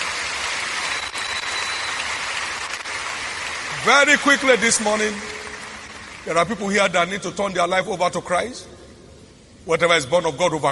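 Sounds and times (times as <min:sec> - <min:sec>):
audience clapping: 0:00.0 - 0:07.0
speech: 0:03.8 - 0:05.4, 0:06.2 - 0:08.8, 0:09.6 - 0:10.7.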